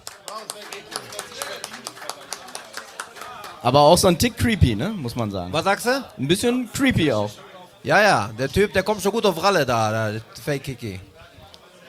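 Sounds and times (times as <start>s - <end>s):
small audience applause: 0.0s - 4.4s
speech: 0.4s - 1.0s, 3.6s - 11.1s
voices talking and exclaiming: 0.8s - 11.8s.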